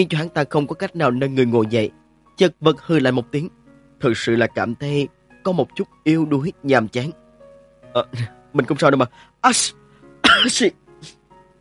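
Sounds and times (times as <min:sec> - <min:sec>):
speech: 0:00.0 - 0:07.2, 0:07.9 - 0:11.2
person sneezing: 0:10.2 - 0:11.2.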